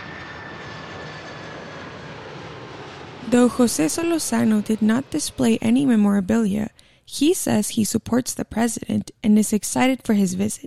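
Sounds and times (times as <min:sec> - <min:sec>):
Air Force One engines roaring as it approaches Yuma airport: 0:00.0 - 0:07.0
speech: 0:03.3 - 0:10.6.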